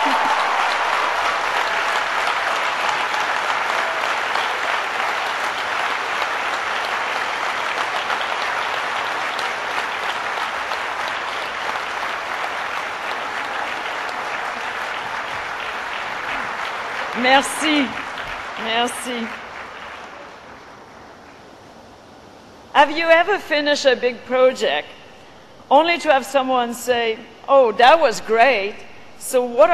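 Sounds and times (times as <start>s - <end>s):
graduates' big round of applause: 0.0s - 21.9s
speech: 17.3s - 18.0s, 18.7s - 19.4s, 22.8s - 25.0s, 25.7s - 29.7s.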